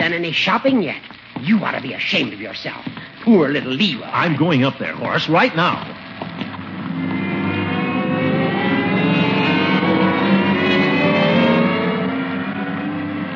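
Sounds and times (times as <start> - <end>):
speech: 0.1 - 6.0
escalator running as a radio comedy sound effect: 6.0 - 13.3.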